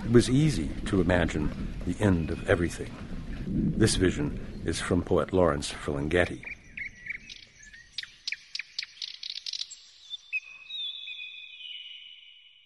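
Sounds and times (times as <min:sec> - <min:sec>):
speech: 0:00.1 - 0:06.5
nightingale song: 0:06.4 - 0:12.6.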